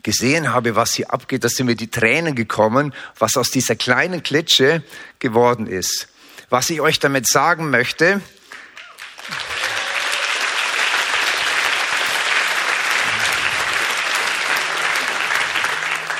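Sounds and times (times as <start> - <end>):
speech: 0.0 - 8.4
audience applause at a Jugend 2000 gathering: 8.5 - 16.1.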